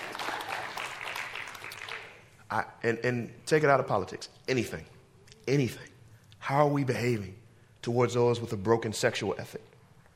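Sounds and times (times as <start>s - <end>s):
scattered audience applause: 0.0s - 2.2s
speech: 2.5s - 9.7s.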